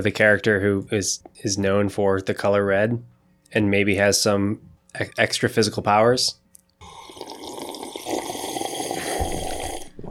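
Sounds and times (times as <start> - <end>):
speech: 0.0 - 6.4
loud tea sipping: 6.8 - 10.0.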